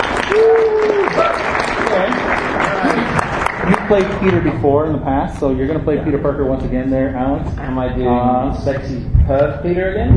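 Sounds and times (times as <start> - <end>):
audience applause: 0.0 - 4.6
speech: 3.9 - 10.1.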